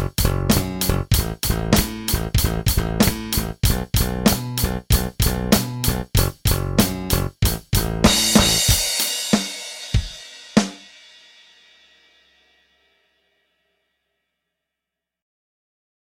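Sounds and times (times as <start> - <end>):
bass drum hits: 0.0 - 10.2.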